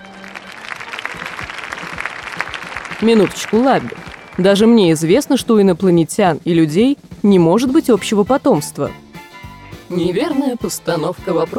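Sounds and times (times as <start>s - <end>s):
audience clapping admiringly: 0.0s - 5.4s
speech: 3.0s - 9.0s, 9.9s - 11.5s.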